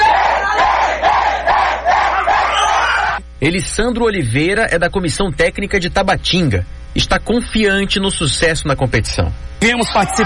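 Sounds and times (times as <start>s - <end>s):
crowd roar: 0.0s - 3.2s
sports fans chanting a battle cry in unison: 0.0s - 3.2s
speech: 3.4s - 10.2s.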